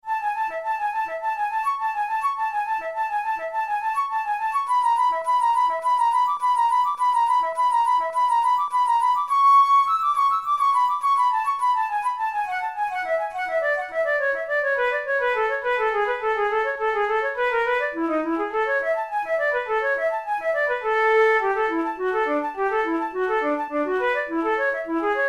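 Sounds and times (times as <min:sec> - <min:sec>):
flute study: 0:00.0 - 0:25.2.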